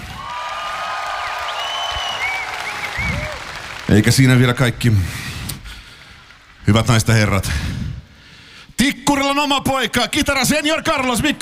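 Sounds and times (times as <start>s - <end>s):
audience applause for a guitarist at a concert: 0.0s - 6.6s
shrill whistles: 0.6s - 3.5s
speech: 3.9s - 5.3s, 6.7s - 7.8s, 9.1s - 11.4s.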